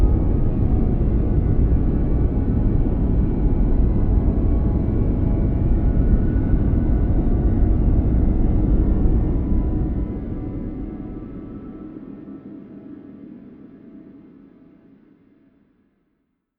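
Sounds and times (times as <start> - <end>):
drone: 0.0 - 12.8.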